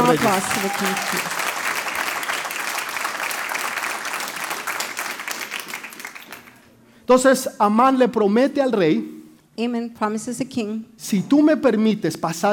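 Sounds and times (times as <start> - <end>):
loud audience applause: 0.0 - 6.6
speech: 0.1 - 1.3, 7.1 - 12.5.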